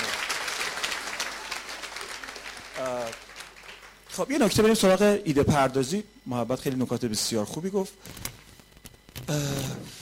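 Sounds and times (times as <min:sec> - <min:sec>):
audience applause: 0:00.0 - 0:04.2
speech: 0:02.8 - 0:03.3, 0:04.2 - 0:08.2, 0:09.3 - 0:09.9.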